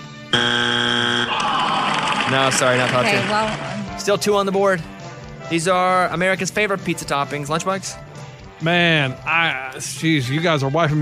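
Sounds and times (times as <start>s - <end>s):
game show wrong-answer buzzer: 0.3s - 1.5s
speech: 2.3s - 4.9s, 5.5s - 8.0s, 8.6s - 11.0s.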